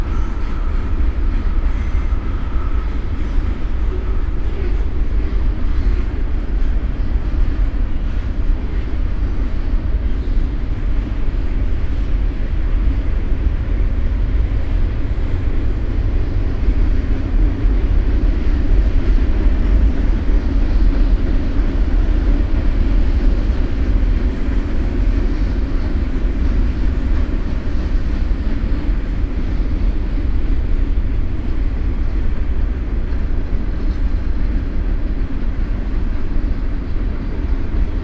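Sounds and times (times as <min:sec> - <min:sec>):
freight train: 0:00.0 - 0:38.0.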